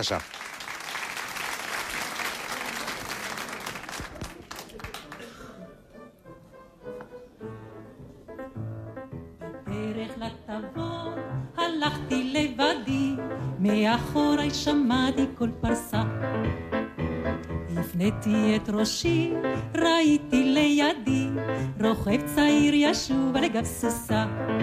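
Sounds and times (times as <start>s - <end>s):
speech: 0.0s - 0.4s, 13.9s - 15.7s, 18.0s - 24.6s
audience applause: 0.0s - 5.6s
instrumental music: 5.7s - 24.6s.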